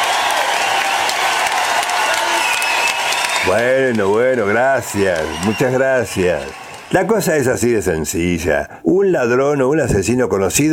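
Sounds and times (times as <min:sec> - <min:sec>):
large audience applause: 0:00.0 - 0:07.8
scattered cheers: 0:00.0 - 0:07.8
whistle: 0:02.2 - 0:03.6
speech: 0:03.4 - 0:10.7.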